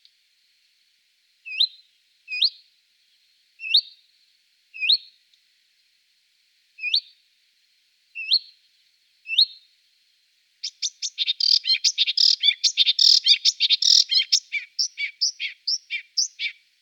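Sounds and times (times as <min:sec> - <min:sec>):
marsh warbler song: 0:03.6 - 0:04.0, 0:04.8 - 0:05.1, 0:06.8 - 0:07.2, 0:08.2 - 0:08.6, 0:09.3 - 0:09.6, 0:10.6 - 0:16.6.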